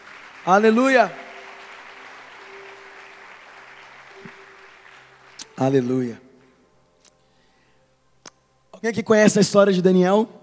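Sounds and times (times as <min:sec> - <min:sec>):
audience applauding: 0:00.0 - 0:05.8
speech: 0:00.4 - 0:01.2, 0:05.6 - 0:06.2, 0:08.8 - 0:10.4.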